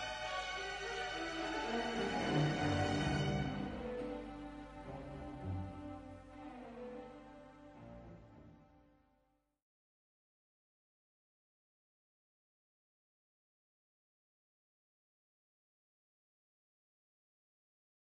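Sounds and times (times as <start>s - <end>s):
trumpet concerto: 0.0s - 6.5s.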